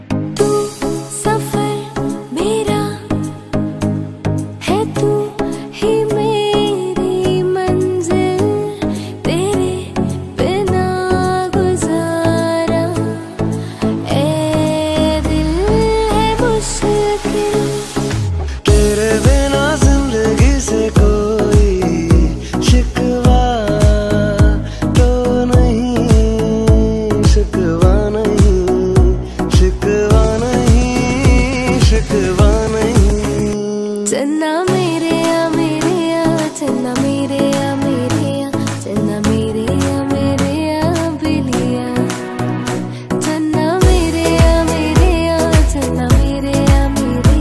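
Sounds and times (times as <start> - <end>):
modern Sufi songs mashup: 0.4 - 3.5, 4.6 - 47.3.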